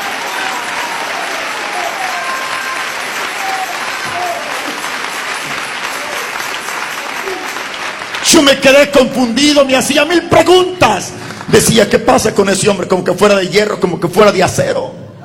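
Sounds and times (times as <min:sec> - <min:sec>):
audience applause: 0:00.0 - 0:12.0
speech: 0:08.3 - 0:15.0.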